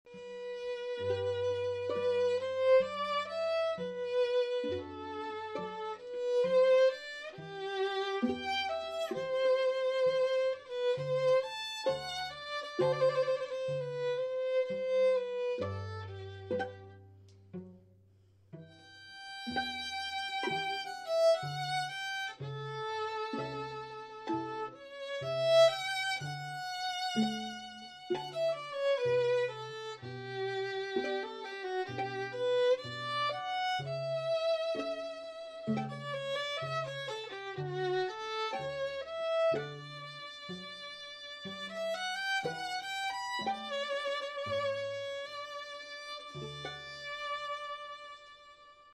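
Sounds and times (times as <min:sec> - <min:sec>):
string quartet: 0:00.0 - 0:48.9.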